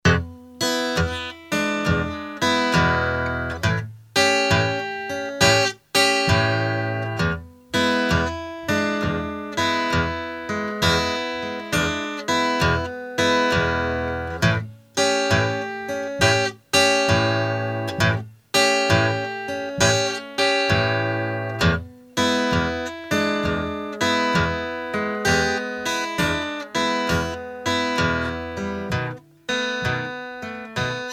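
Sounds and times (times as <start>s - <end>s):
deep south blues music: 0.0s - 31.1s.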